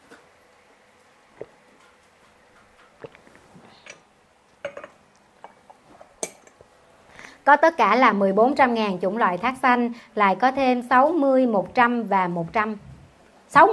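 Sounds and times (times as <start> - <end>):
glass of water clinking: 4.6 - 5.6, 6.2 - 6.6
speech: 7.5 - 12.9, 13.5 - 13.7.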